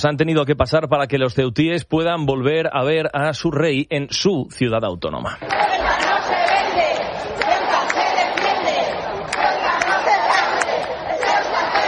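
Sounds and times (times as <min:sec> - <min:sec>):
speech: 0:00.0 - 0:06.8
large crowd shouting and cheering: 0:05.4 - 0:11.8.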